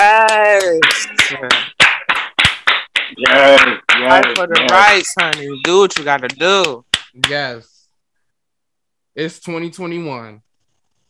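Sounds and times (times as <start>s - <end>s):
clapping: 0.1s - 7.3s
speech: 1.3s - 1.8s, 3.4s - 7.7s, 9.2s - 10.5s.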